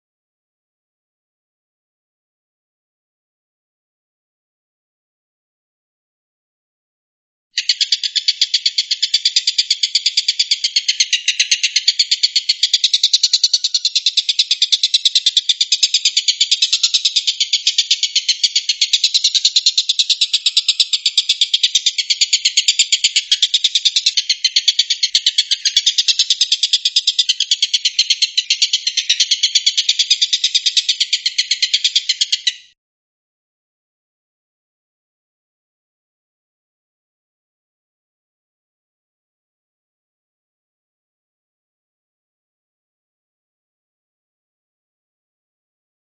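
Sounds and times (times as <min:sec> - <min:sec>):
stork-billed kingfisher raspy rattle: 0:07.6 - 0:32.7.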